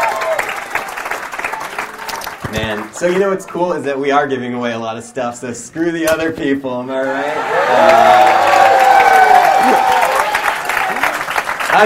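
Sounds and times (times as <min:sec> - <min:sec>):
audience applause: 0:00.0 - 0:03.4, 0:07.4 - 0:11.8
speech: 0:02.6 - 0:08.5.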